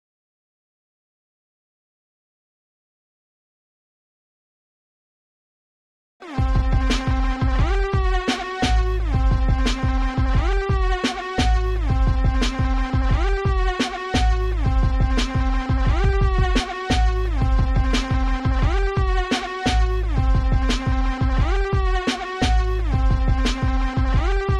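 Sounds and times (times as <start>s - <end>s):
instrumental music: 6.2s - 24.5s.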